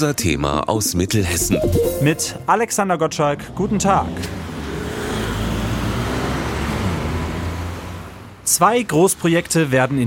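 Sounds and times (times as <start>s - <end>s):
speech: 0.0s - 4.4s, 8.5s - 10.0s
city road traffic: 3.1s - 10.0s.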